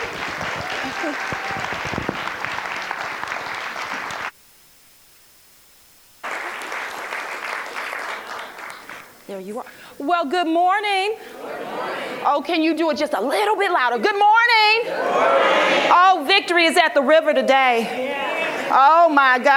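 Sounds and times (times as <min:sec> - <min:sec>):
audience applause welcoming a speaker: 0:00.0 - 0:04.4, 0:06.2 - 0:09.3
whoops from the audience: 0:00.6 - 0:01.9
speech: 0:09.4 - 0:18.1, 0:18.7 - 0:19.5.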